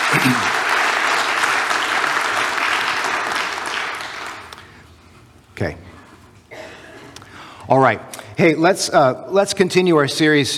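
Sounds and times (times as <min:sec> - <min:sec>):
audience applause: 0:00.0 - 0:04.5
speech: 0:00.2 - 0:00.5, 0:05.6 - 0:05.8, 0:07.7 - 0:10.5.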